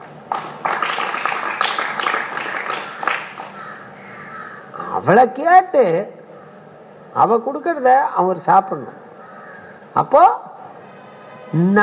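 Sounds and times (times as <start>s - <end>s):
audience clapping hands: 0.0s - 3.6s
speech: 5.0s - 6.2s, 7.1s - 9.0s, 10.0s - 10.5s, 11.5s - 11.8s.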